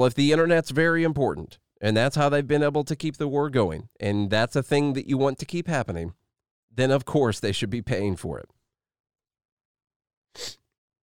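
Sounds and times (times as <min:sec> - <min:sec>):
speech: 0:00.0 - 0:08.6, 0:10.3 - 0:10.6
person sniffling: 0:10.4 - 0:10.7.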